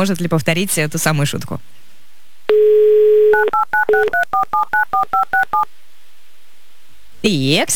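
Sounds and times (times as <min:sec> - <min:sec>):
speech: 0:00.0 - 0:01.9, 0:03.5 - 0:05.8, 0:07.2 - 0:07.7
telephone dial tone: 0:02.5 - 0:05.6
two-pitch telephone keypad beeps: 0:03.3 - 0:05.7.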